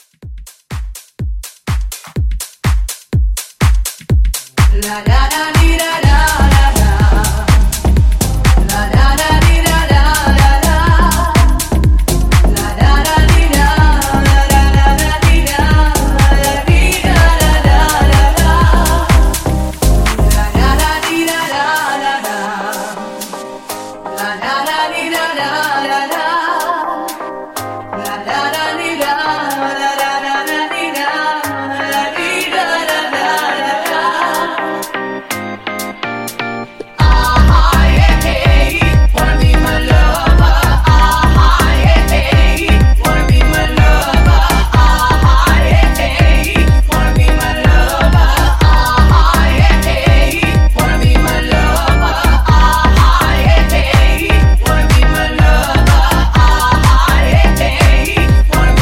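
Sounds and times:
90s dance music mashup at 124 BPM: 0:00.0 - 0:58.7.

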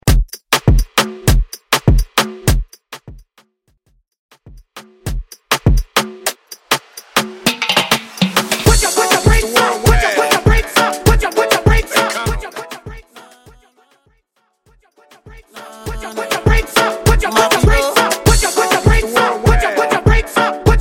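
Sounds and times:
moombahton dance music: 0:00.0 - 0:03.1, 0:04.4 - 0:14.1, 0:14.8 - 0:20.7.

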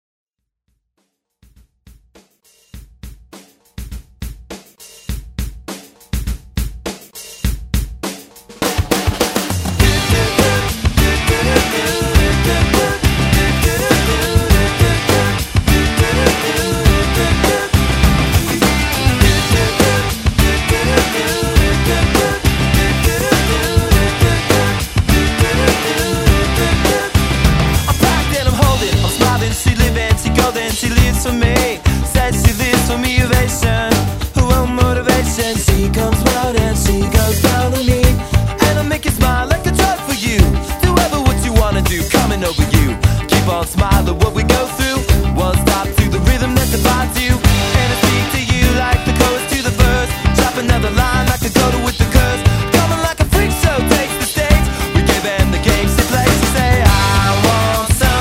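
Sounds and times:
90s pop rock music: 0:04.5 - 0:58.2.

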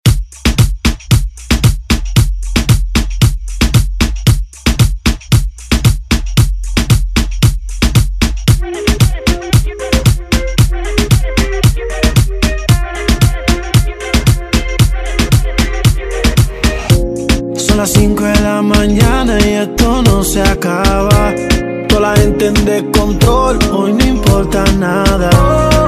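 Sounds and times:
reggaeton music: 0:00.1 - 0:25.8.

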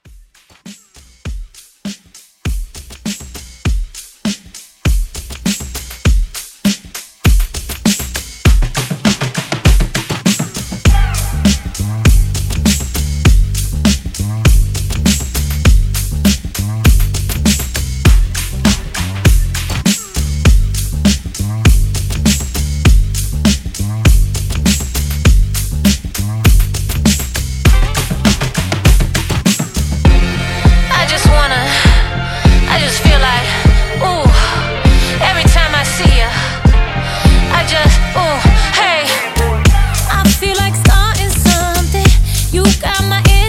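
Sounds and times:
club dance track: 0:00.0 - 0:43.4.

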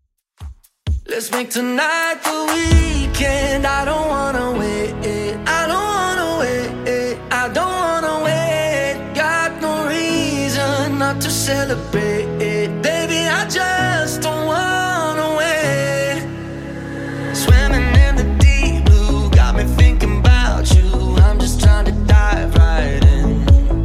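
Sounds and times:
Top 40 pop music at 130 BPM: 0:00.9 - 0:23.8.

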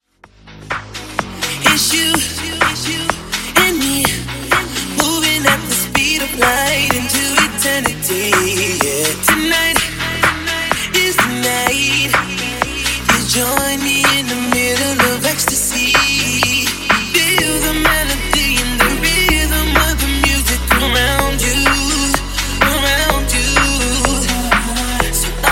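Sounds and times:
funk music: 0:00.3 - 0:25.5.

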